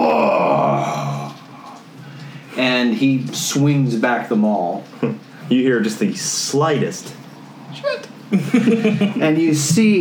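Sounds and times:
loud guttural yell: 0.0 - 1.4
speech: 2.9 - 10.0
laughter: 8.3 - 9.4.

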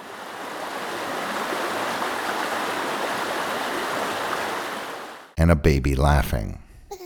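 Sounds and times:
stream water flowing: 0.0 - 5.3
speech: 5.4 - 6.6.

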